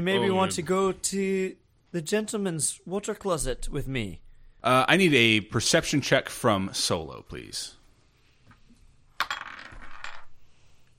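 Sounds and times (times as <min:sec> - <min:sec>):
speech: 0:00.0 - 0:07.8
dice rolling on a hard surface: 0:09.1 - 0:10.4.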